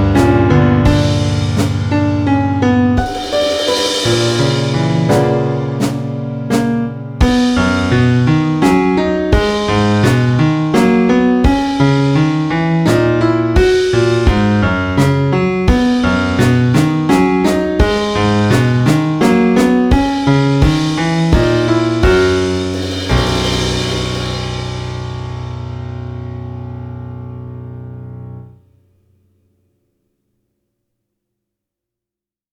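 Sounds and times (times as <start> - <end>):
drum kit playing a waltz: 0.0 - 26.6
piano playing a waltz: 0.0 - 28.6.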